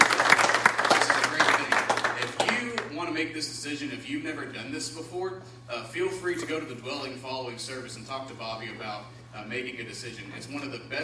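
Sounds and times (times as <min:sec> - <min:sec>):
audience applause: 0:00.0 - 0:02.5
speech: 0:03.7 - 0:11.0.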